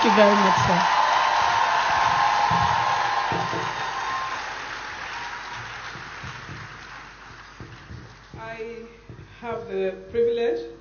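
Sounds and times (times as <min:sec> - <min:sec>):
speech: 0:00.0 - 0:01.0, 0:09.7 - 0:10.7
audience applause: 0:00.0 - 0:08.4.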